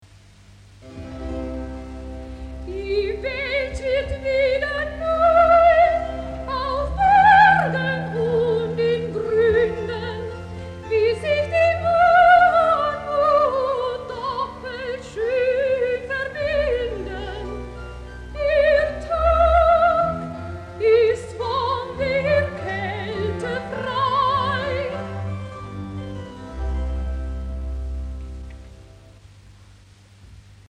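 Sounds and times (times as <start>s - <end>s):
recitative singing: 2.7s - 25.5s.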